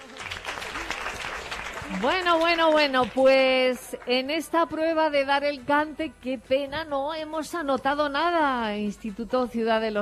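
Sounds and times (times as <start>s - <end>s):
audience clapping for a student singer at a school contest: 0.0s - 4.5s
speech: 1.9s - 10.0s.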